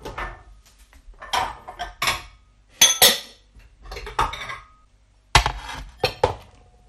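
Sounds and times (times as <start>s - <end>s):
mixing bowls clattering as taken out: 1.2s - 6.6s.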